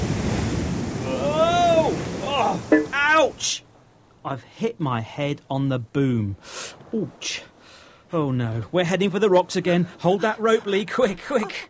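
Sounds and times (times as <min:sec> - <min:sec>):
big wave crashing against a sailing boat at sea amid wind-blown surf: 0:00.0 - 0:03.4
speech: 0:02.7 - 0:07.5, 0:08.1 - 0:11.6.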